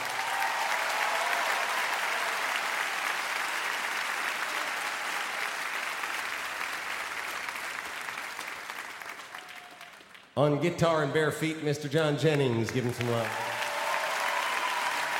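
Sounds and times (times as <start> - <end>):
audience applause at live concert: 0.0 - 10.4, 12.4 - 15.1
speech: 10.4 - 13.4.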